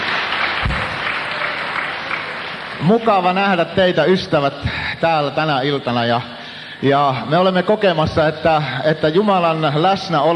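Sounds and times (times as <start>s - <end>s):
audience at a religious meeting applauding: 0.0s - 3.8s
speech: 2.8s - 10.3s.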